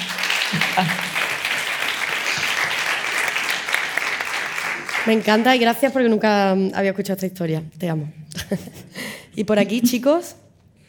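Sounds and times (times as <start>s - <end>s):
audience applause: 0.0s - 5.6s
laughter: 0.5s - 1.7s
speech: 0.8s - 1.1s, 5.0s - 8.8s, 9.4s - 10.4s.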